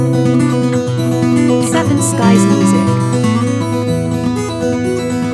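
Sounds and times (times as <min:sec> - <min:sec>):
etude in E major: 0:00.1 - 0:05.2.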